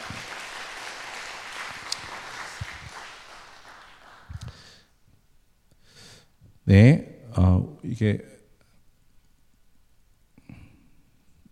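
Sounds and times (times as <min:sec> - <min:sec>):
audience applause: 0:00.0 - 0:04.8
speech: 0:06.7 - 0:07.0, 0:08.0 - 0:08.4.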